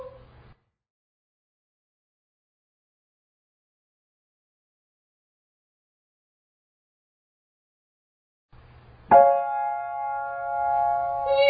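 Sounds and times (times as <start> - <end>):
descending triad arpeggio: 9.1 - 11.3.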